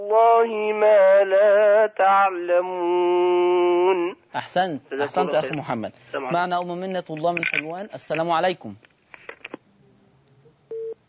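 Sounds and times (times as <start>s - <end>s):
speech: 0.0s - 8.9s
telephone busy tone after a call-in line call cuts off: 10.7s - 11.0s.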